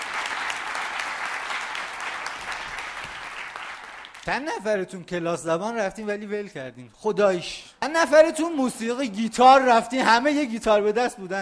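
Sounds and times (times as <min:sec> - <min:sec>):
audience applause: 0:00.0 - 0:04.3
speech: 0:04.2 - 0:11.4.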